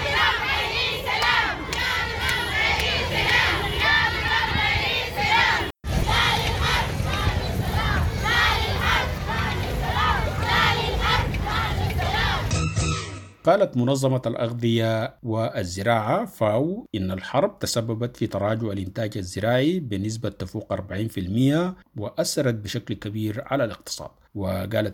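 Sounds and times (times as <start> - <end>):
women protesters chanting slogans at a peace march in Nyala: 0.0 - 12.5
speech: 13.5 - 24.9.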